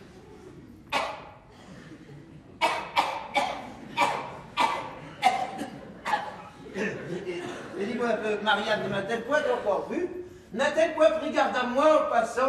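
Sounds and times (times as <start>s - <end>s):
person with a fluxion coughing harshly: 0.9s - 1.4s, 2.6s - 6.5s
laughter: 1.6s - 2.6s, 3.7s - 10.0s
speech: 8.0s - 12.4s.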